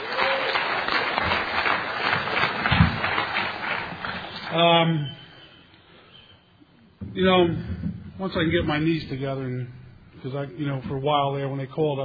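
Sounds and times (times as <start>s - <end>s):
audience round of applause: 0.0s - 4.9s
speech: 4.6s - 5.2s, 7.2s - 12.0s.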